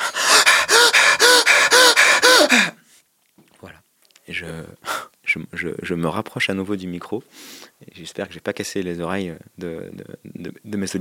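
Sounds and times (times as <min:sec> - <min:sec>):
person demonstrating deep, forceful breathing away from the microphone: 0:00.0 - 0:02.8
speech: 0:05.8 - 0:10.9.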